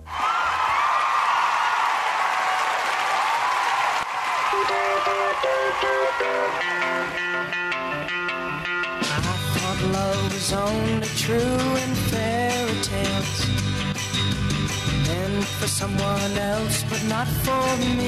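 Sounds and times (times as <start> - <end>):
audience applause after a performer is introduced: 0.0 - 7.6
music playing: 4.5 - 18.0
speech: 5.4 - 7.7, 10.4 - 13.1, 15.1 - 18.0.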